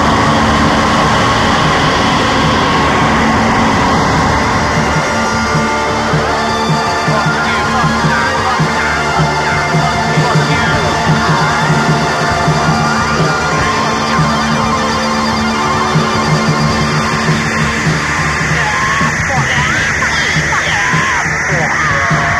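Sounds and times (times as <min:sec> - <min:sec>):
harsh noise: 0:00.0 - 0:22.3.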